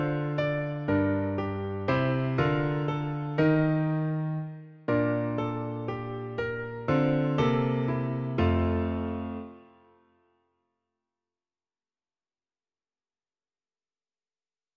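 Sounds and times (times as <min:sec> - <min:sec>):
piano: 0:00.0 - 0:10.4.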